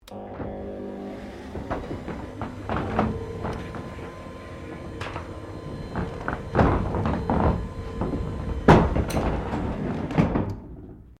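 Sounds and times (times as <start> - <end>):
electronic aluminium roller garage door raising: 0.0 - 11.1.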